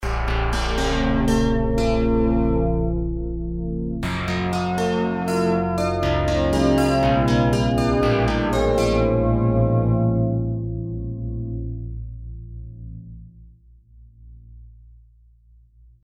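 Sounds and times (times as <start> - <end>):
keyboard: 0.0 - 12.9.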